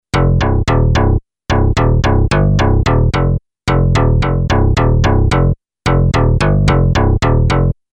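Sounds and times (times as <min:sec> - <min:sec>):
bass: 0:00.0 - 0:07.9.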